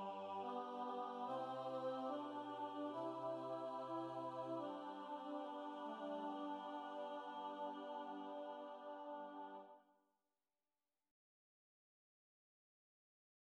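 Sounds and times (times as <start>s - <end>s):
alto voice singing a mass: 0.0s - 9.8s.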